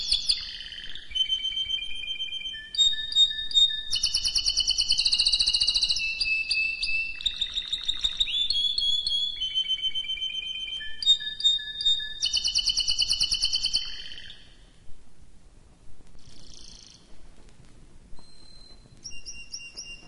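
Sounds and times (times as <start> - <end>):
canary singing: 0.0 - 14.8, 16.2 - 17.1, 18.2 - 20.0.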